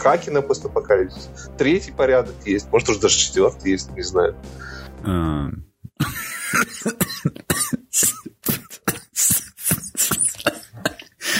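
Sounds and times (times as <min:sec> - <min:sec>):
speech: 0:00.0 - 0:08.6
long awkward coughing: 0:06.0 - 0:11.3.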